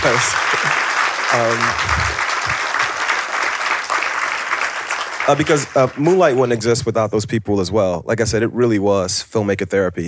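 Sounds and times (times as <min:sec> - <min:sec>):
speech: 0:00.0 - 0:02.7, 0:05.3 - 0:10.0
audience applause: 0:00.0 - 0:06.6.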